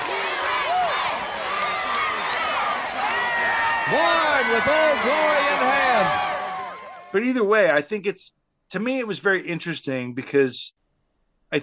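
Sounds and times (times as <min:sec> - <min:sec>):
crowd chanting USA: 0:00.0 - 0:07.1
speech: 0:03.9 - 0:06.3, 0:07.1 - 0:10.8.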